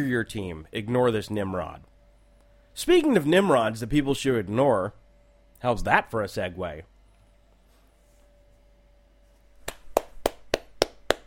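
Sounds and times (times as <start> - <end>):
speech: 0.0 - 1.9, 2.8 - 5.0, 5.6 - 6.9
one person clapping hands: 9.6 - 11.2.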